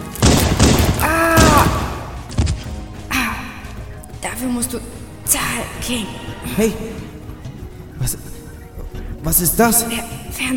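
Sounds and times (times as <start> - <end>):
gunshots fired at a person's shoulder and legs: 0.0 - 2.6
thuds: 0.2 - 2.8
speech: 4.4 - 7.2, 8.0 - 8.4, 9.2 - 10.5.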